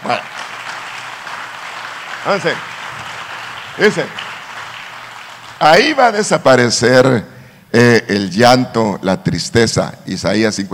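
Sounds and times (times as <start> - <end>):
crowd audience applauding: 0.0 - 6.3
speech: 0.1 - 0.3, 2.2 - 2.7, 3.8 - 4.2, 5.6 - 10.7.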